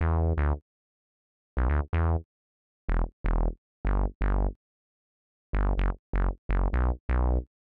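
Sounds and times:
resonant synth bass in E: 0.0 - 0.6, 1.6 - 2.2, 2.9 - 4.6, 5.6 - 7.5.

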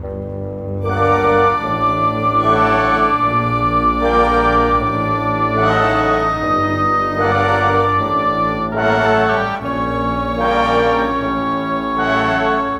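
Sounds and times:
cinematic orchestra: 0.0 - 12.7.

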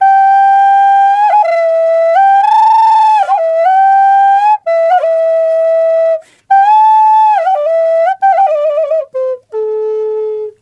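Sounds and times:
wild flute: 0.0 - 10.6.

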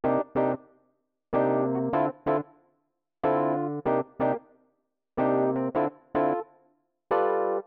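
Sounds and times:
Rhodes chords in C, nu jazz house, 125 BPM: 0.0 - 0.6, 1.4 - 2.4, 3.2 - 4.4, 5.2 - 6.4, 7.1 - 7.6.

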